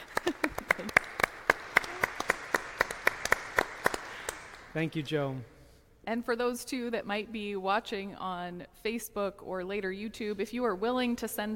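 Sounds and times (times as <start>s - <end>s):
laughter: 0.0s - 1.1s
audience clapping: 0.0s - 5.2s
speech: 4.8s - 11.5s.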